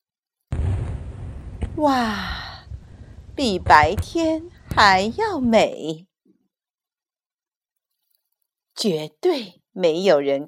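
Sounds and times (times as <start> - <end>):
deep rumbling roar with crackling texture: 0.5 - 5.6
fireworks loud bang: 0.5 - 5.7
speech: 1.8 - 2.4, 3.4 - 6.1, 8.8 - 10.4.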